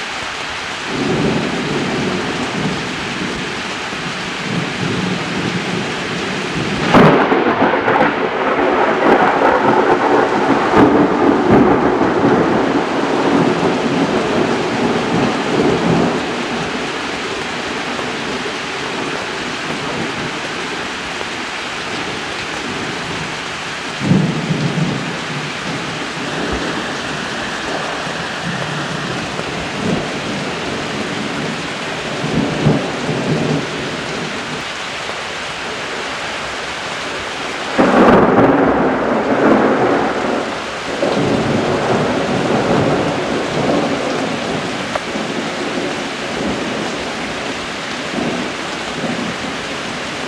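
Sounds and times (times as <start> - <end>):
rain: 0.0 - 50.2
thunder: 4.4 - 20.6, 23.9 - 34.6, 37.6 - 50.2.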